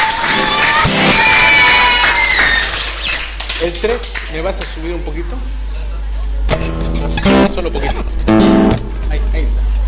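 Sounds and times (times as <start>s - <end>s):
audience applause: 0.0s - 4.7s
speech: 3.8s - 5.7s, 6.6s - 9.7s.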